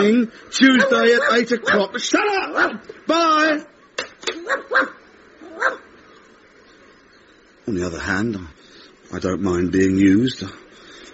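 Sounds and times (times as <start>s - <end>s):
speech: 0.0s - 3.7s, 7.7s - 10.6s
stray dog yelping barks: 0.6s - 2.8s, 4.3s - 5.9s.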